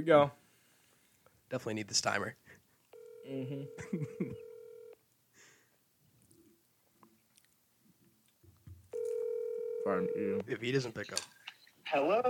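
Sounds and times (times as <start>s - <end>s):
speech: 0.0s - 0.4s, 1.5s - 2.4s, 3.2s - 4.4s, 9.8s - 12.2s
electronic telephone dialing tones: 3.0s - 5.0s, 9.0s - 10.4s.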